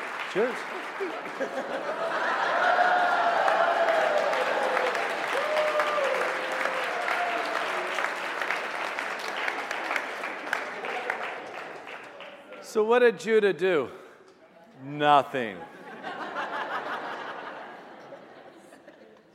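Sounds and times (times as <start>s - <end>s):
audience applause: 0.0s - 12.6s
speech: 0.4s - 2.8s, 12.7s - 14.0s, 14.8s - 15.8s
laughter: 1.0s - 3.1s, 15.6s - 19.3s
whooping: 2.2s - 8.0s.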